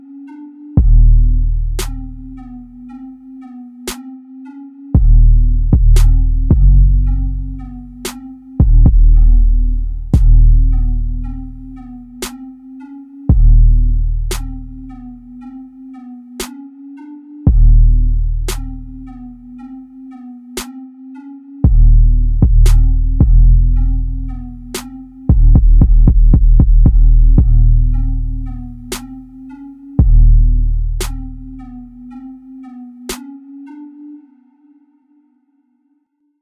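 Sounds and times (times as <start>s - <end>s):
trap beat: 0.8s - 2.6s, 5.0s - 12.5s, 13.3s - 15.2s, 17.5s - 19.4s, 21.6s - 31.9s.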